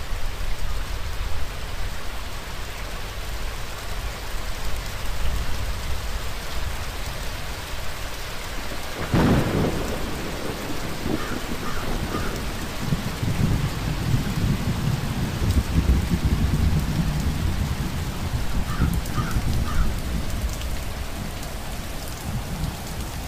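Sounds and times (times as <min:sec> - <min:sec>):
steady rain: 0:00.0 - 0:23.2
thunder crack and rumble: 0:08.7 - 0:19.9.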